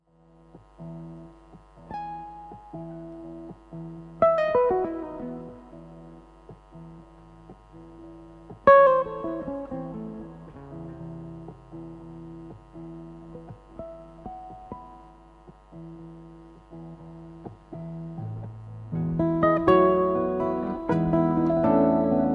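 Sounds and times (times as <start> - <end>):
live guitar playing: 0.8 - 22.3.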